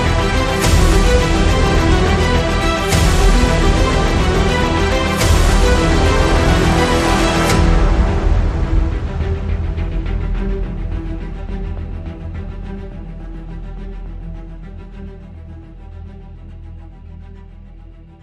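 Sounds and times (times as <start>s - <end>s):
light percussion: 0.0s - 14.3s.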